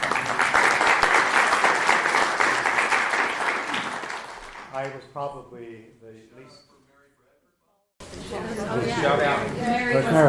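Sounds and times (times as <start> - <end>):
audience applause: 0.0 - 5.0
speech: 4.8 - 6.8, 8.3 - 10.2.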